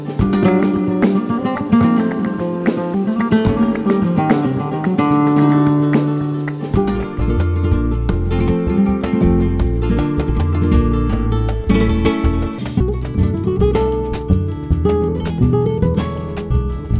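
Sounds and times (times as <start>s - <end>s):
flamenco percussion: 0.0s - 16.9s.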